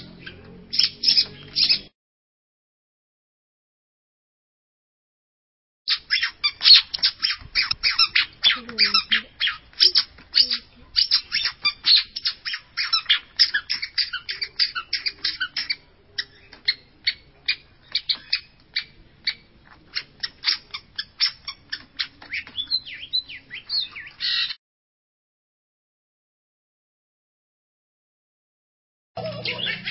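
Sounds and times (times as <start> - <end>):
long-tailed shrike song of harsh and squeaky notes: 5.9 - 24.5, 29.2 - 29.8.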